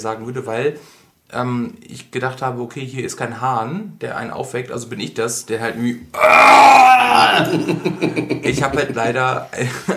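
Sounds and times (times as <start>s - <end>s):
speech: 0.0s - 9.9s
person imitating a loud, bellowing retching roar: 6.1s - 7.8s
laughter: 7.3s - 9.9s.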